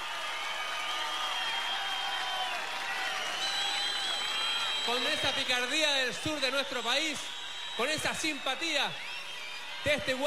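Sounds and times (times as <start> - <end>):
loud applause: 0.0 - 10.2
speech: 4.9 - 9.1, 9.8 - 10.2.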